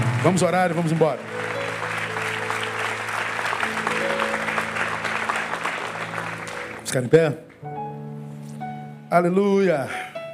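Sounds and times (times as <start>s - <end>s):
audience applause: 0.0s - 7.3s
speech: 0.2s - 1.6s, 6.9s - 7.8s, 9.1s - 10.0s.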